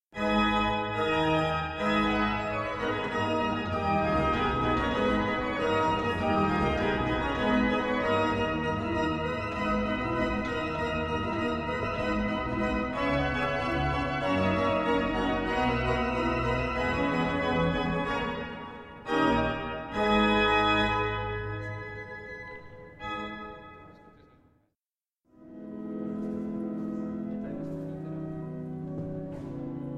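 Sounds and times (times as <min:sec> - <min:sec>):
pipe organ from 1763 with two manuals and 12 stops: 0:00.2 - 0:24.4, 0:25.4 - 0:29.9.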